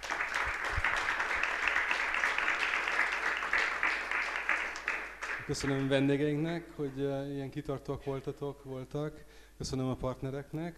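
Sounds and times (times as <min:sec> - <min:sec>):
audience applause: 0:00.0 - 0:06.0
speech: 0:05.5 - 0:10.7.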